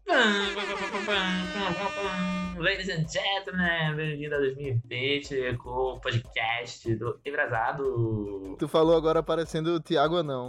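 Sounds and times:
person imitating a horn blast: 0:00.1 - 0:02.7
speech: 0:01.0 - 0:10.4.

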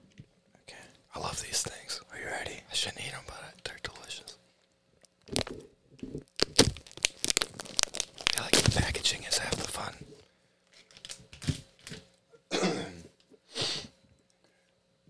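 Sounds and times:
soft whispering: 0:00.6 - 0:04.4, 0:08.2 - 0:10.2
sour candy package being torn open: 0:05.2 - 0:05.6, 0:06.2 - 0:10.0, 0:10.7 - 0:12.0.

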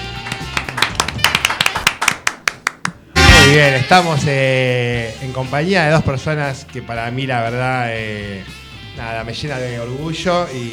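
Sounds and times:
small audience applause: 0:00.1 - 0:02.5
speech: 0:03.5 - 0:10.7.

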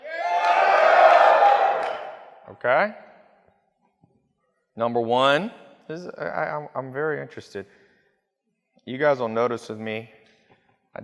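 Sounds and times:
audience yelling a vote: 0:00.0 - 0:02.3
speech: 0:02.6 - 0:03.0, 0:04.8 - 0:07.8, 0:08.8 - 0:10.2.

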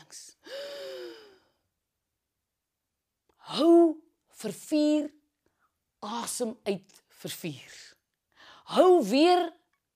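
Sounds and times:
deep inhale during a morning breathing exercise: 0:00.4 - 0:01.6
speech: 0:03.5 - 0:05.2, 0:06.0 - 0:07.9, 0:08.7 - 0:09.6.

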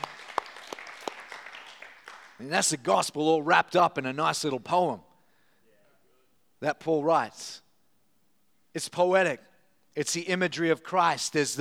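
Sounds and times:
audience applause: 0:00.0 - 0:02.4
speech: 0:02.4 - 0:05.1, 0:06.6 - 0:07.6, 0:08.8 - 0:11.5.

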